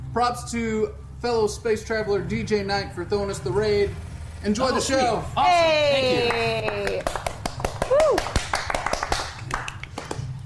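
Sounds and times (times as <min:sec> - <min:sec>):
low steady hum: 0:00.0 - 0:10.4
speech: 0:00.2 - 0:07.1
sharp hand claps: 0:06.2 - 0:10.4.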